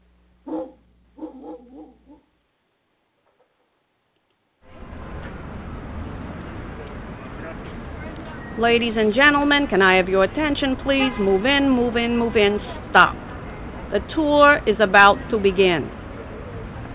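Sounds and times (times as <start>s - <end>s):
dog barking: 0.5s - 2.2s
speech: 8.6s - 13.2s, 13.9s - 16.0s.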